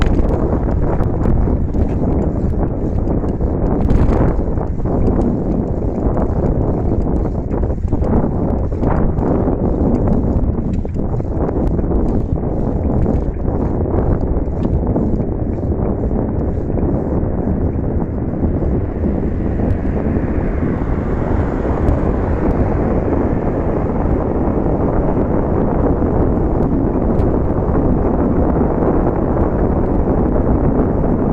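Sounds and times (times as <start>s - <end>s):
bright whirring: 0.0s - 24.7s
bicycle ride at night with wind and rolling noise: 0.0s - 31.3s.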